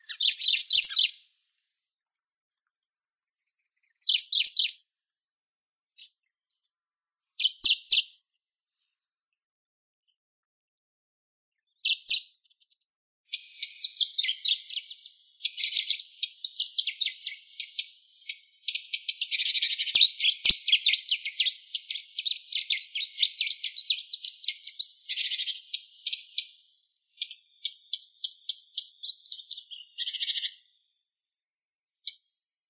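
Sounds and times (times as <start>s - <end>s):
Phylloscopus fuscatus dusky warbler calling: 0.0s - 1.2s, 4.1s - 4.8s, 7.4s - 8.1s, 11.8s - 12.3s, 13.3s - 26.6s, 27.2s - 30.6s.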